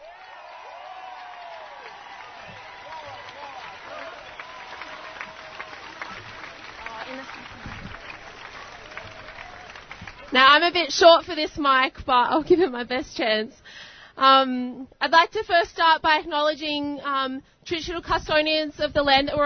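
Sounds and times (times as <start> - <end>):
audience applause: 0.0 - 10.6
speech: 10.3 - 19.4.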